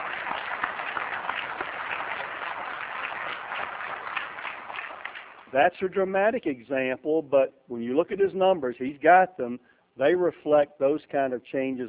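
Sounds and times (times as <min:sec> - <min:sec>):
audience applause: 0:00.0 - 0:05.5
speech: 0:05.5 - 0:11.8.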